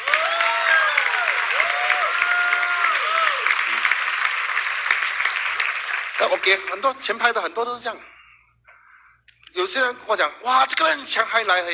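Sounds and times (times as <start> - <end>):
cheering and whistles: 0.0 - 3.8
audience applause: 0.0 - 7.0
speech: 6.2 - 8.1, 9.6 - 11.7.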